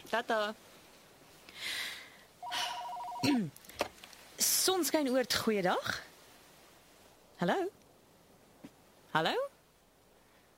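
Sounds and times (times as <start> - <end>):
speech: 0.1 - 0.7, 3.2 - 3.6, 4.4 - 6.1, 7.4 - 7.8, 9.2 - 9.5
telephone ringing with an electronic trill: 2.4 - 3.4.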